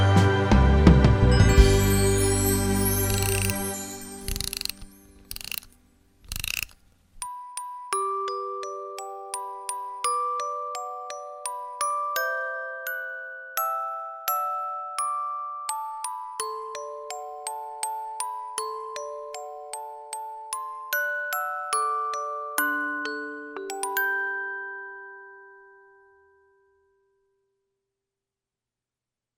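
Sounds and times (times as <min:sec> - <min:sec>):
lullaby on piano and orchestra: 0:00.8 - 0:05.1, 0:07.2 - 0:26.9.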